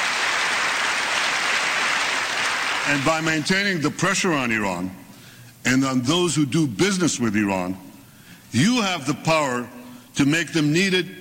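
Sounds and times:
audience applause: 0.0s - 3.3s
speech: 2.9s - 5.0s, 5.6s - 7.9s, 8.5s - 11.1s.

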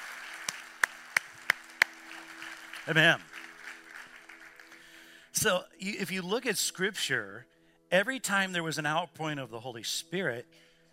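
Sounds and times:
hand claps: 0.0s - 4.9s
speech: 2.9s - 3.3s, 5.4s - 10.7s.

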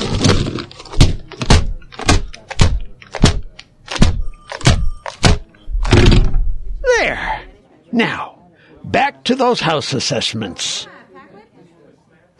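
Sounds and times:
keyboard smashed on a desktop: 0.0s - 6.5s
speech: 8.0s - 8.3s, 8.9s - 11.0s.

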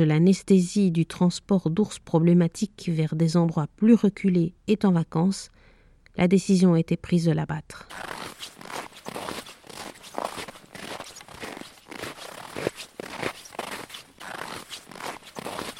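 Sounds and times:
speech: 0.0s - 5.6s, 6.2s - 8.5s
footsteps walking on frozen ice: 7.9s - 15.7s.

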